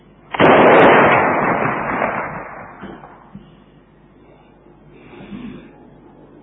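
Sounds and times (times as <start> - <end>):
cannon fired on command: 0.3 - 3.3.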